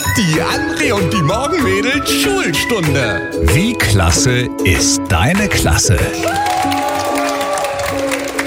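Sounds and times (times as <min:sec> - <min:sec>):
speech: 0:00.2 - 0:06.9
class of schoolchildren clapping: 0:05.3 - 0:08.4.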